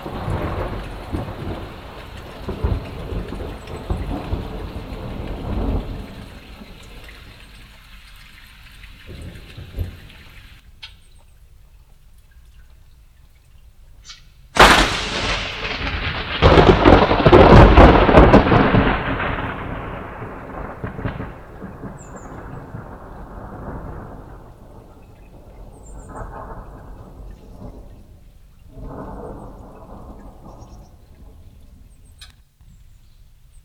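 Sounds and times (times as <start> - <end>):
thunder: 0.0 - 7.4, 8.9 - 10.6, 14.6 - 31.9.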